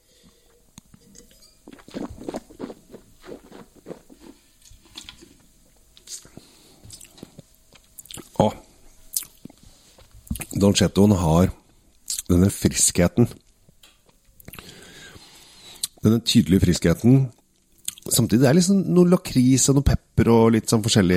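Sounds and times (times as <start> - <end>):
chewing on truffle pizza: 0.8 - 5.2, 6.0 - 8.4, 9.1 - 10.6, 13.4 - 14.7, 17.6 - 18.1
speech: 10.6 - 11.6, 12.3 - 13.4, 16.1 - 17.4, 18.1 - 21.1.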